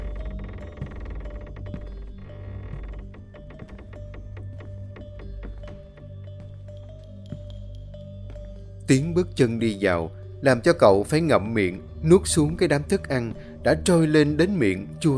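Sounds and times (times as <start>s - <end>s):
iron door opening: 0.0s - 6.3s
speech: 8.9s - 15.1s.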